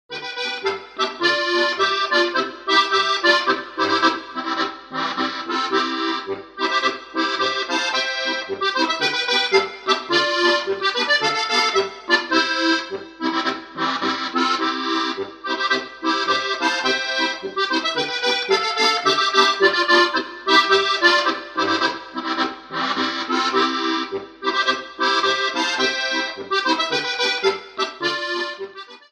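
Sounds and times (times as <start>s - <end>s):
polka music: 0.1s - 29.1s.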